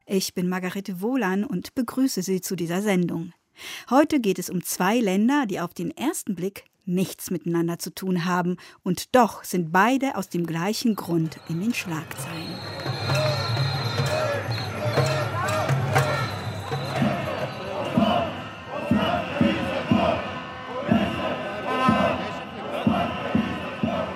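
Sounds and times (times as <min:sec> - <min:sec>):
speech: 0:00.1 - 0:13.4
street protest crowds in Israel and Bulgaria shouting and chanting: 0:11.0 - 0:24.1.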